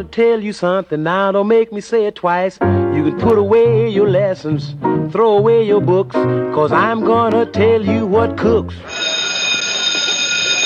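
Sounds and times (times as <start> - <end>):
speech: 0.0 - 8.9
school bell ringing: 8.8 - 10.6.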